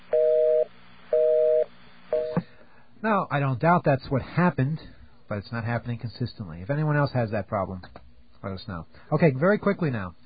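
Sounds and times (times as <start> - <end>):
telephone busy signal: 0.1 - 2.4
speech: 3.0 - 10.2.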